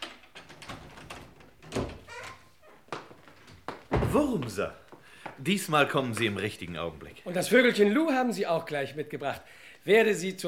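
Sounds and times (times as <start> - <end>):
wooden door forced in by men pushing against it: 0.0 - 2.6
speech: 4.1 - 4.8, 5.4 - 10.4.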